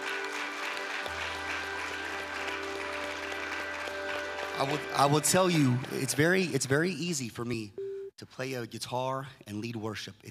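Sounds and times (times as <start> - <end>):
audience applause: 0.0 - 6.6
speech: 4.6 - 10.3.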